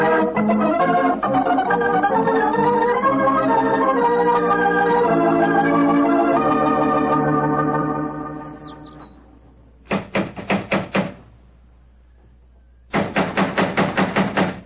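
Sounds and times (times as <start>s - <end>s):
held musical tone: 0.0s - 9.8s
knocking on a door: 9.9s - 11.2s, 13.0s - 14.6s.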